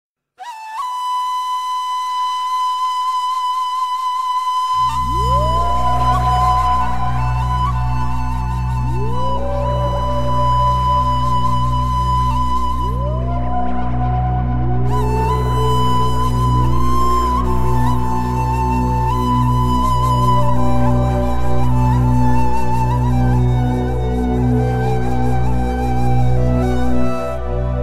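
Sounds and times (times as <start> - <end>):
ney flute: 0.4 - 27.8.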